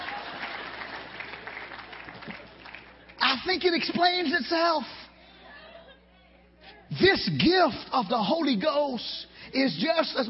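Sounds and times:
audience clapping: 0.0s - 3.8s
speech: 3.4s - 5.0s, 6.9s - 10.2s.

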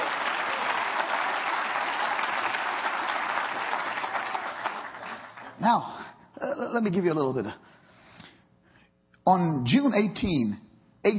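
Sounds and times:
audience clapping hands: 0.0s - 5.8s
speech: 5.6s - 7.7s, 9.3s - 11.1s.

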